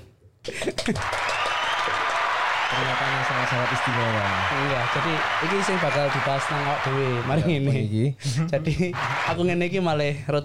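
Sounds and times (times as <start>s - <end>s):
speech: 0.5s - 1.3s, 2.7s - 10.4s
applause: 0.6s - 7.6s, 8.7s - 9.8s
laughter: 2.8s - 9.5s.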